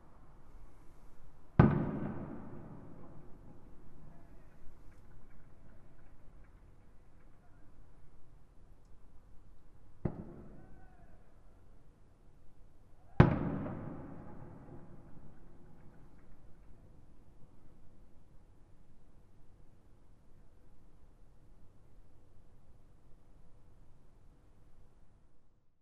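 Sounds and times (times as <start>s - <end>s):
fireworks at Fukushima University: 1.6s - 6.1s, 10.0s - 11.0s, 13.1s - 16.6s.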